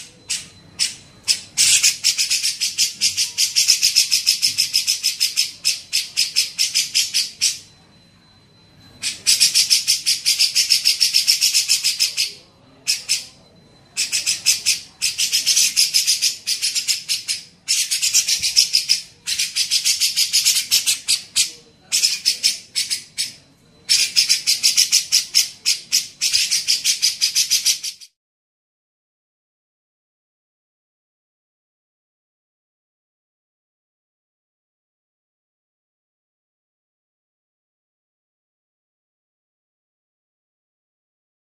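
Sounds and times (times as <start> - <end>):
faint steady high whine: 0.0 - 27.9
grey-cheeked bulbul rasping chatter: 0.0 - 28.1.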